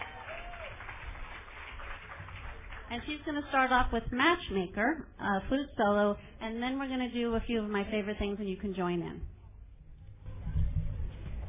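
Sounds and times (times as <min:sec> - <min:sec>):
audience applause: 0:00.0 - 0:03.6
speech: 0:02.9 - 0:09.3.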